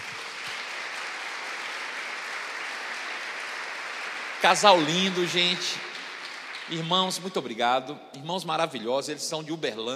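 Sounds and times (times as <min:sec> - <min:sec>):
audience applause: 0:00.0 - 0:07.6
speech: 0:04.4 - 0:05.9, 0:06.7 - 0:09.9.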